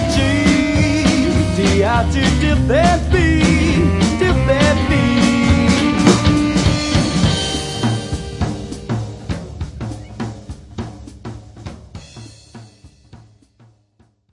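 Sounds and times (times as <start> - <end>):
beat: 0.2 - 10.3.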